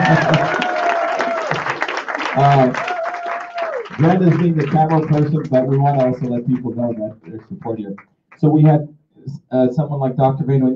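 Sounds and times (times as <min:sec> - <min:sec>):
audience applause: 0:00.0 - 0:08.6
speech: 0:04.0 - 0:10.7.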